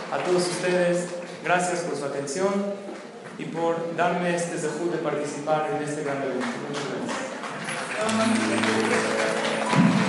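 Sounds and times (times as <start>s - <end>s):
speech: 0.1s - 7.3s, 8.0s - 9.4s
loud steady crowd applause: 7.4s - 10.0s.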